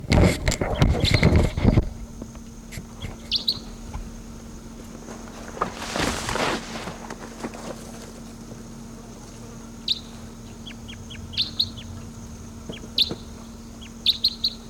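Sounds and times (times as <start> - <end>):
low hum: 0.0 - 14.6
wild bird calling: 3.0 - 3.8, 9.8 - 14.6.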